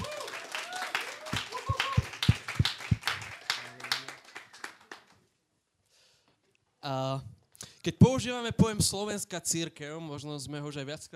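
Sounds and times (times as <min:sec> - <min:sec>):
audience applause welcoming panelists: 0:00.0 - 0:05.2
speech: 0:06.9 - 0:11.1.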